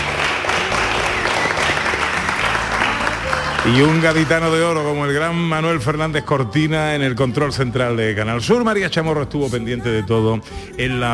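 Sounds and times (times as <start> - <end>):
audience applause: 0.0 - 5.2
speech: 3.6 - 11.1.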